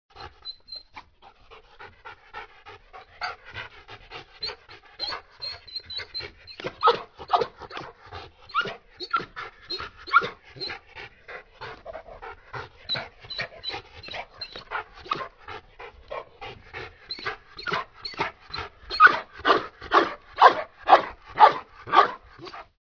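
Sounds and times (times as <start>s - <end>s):
dog panting: 0.1s - 22.8s.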